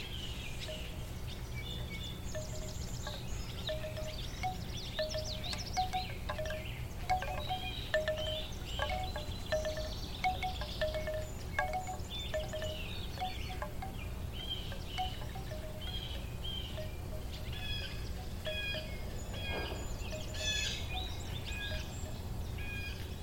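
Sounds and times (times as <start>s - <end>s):
bird chirps: 0.2s - 23.1s
bamboo chimes on a summer day in the Midwest: 0.7s - 1.2s, 1.8s - 22.3s.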